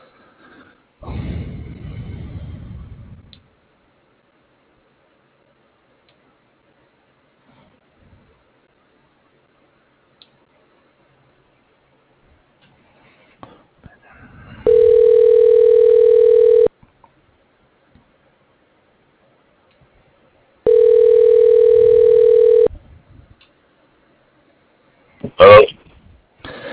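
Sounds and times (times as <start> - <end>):
telephone ringing: 14.6 - 16.7, 20.7 - 22.7.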